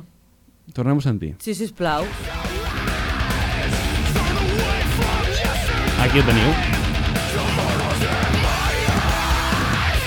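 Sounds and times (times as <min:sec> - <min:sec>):
speech: 0:00.7 - 0:02.5, 0:06.1 - 0:06.8
loud distorted rock song with screamed vocal: 0:02.0 - 0:10.0.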